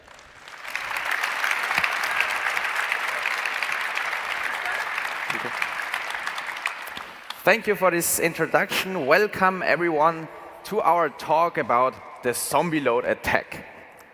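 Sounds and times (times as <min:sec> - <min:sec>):
audience applause: 0:00.0 - 0:07.7
speech: 0:07.4 - 0:13.7.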